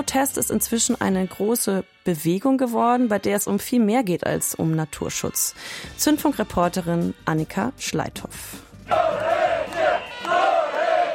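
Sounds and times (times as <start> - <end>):
speech: 0.0 - 9.3
street protest crowd chanting a rhythmic slogan: 8.9 - 11.1.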